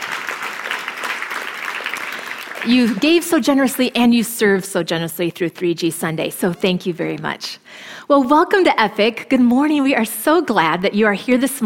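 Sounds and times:
congregation at a Sunday morning church service applauding: 0.0 - 3.4
speech: 2.6 - 11.6.

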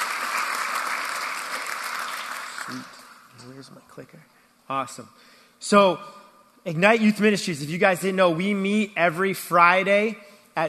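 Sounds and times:
audience applause: 0.0 - 3.3
speech: 2.7 - 10.6.

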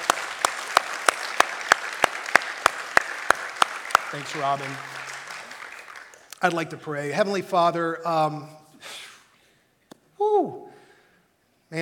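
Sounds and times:
audience applause: 0.0 - 6.8
speech: 4.1 - 5.0, 6.4 - 8.6.

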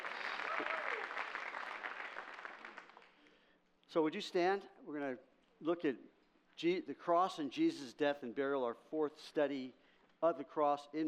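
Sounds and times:
audience clapping: 0.0 - 3.3
speech: 3.9 - 11.0.

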